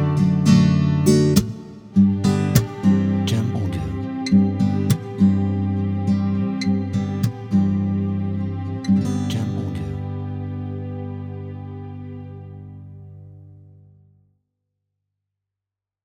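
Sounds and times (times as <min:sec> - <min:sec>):
cello: 0:00.0 - 0:13.5
guitar: 0:00.0 - 0:14.2.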